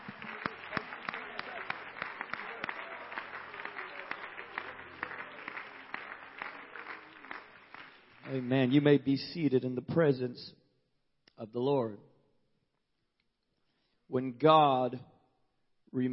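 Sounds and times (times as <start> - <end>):
audience clapping: 0.0 - 9.2
speech: 8.3 - 10.6, 11.4 - 12.1, 14.1 - 15.1, 15.9 - 16.1.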